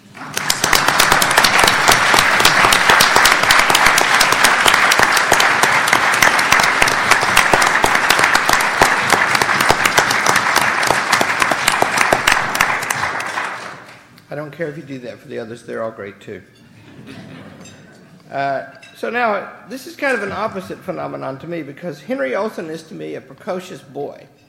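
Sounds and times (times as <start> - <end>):
audience applause: 0.0 - 14.0
speech: 14.6 - 17.3, 18.3 - 24.4.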